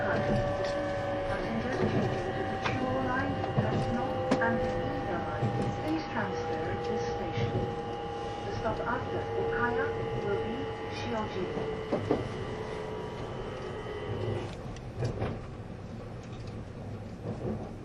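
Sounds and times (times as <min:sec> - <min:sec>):
E257 series Azusa 19 train running between Kofu and Matsumoto: 0:00.0 - 0:17.8
faint voices: 0:01.3 - 0:12.3.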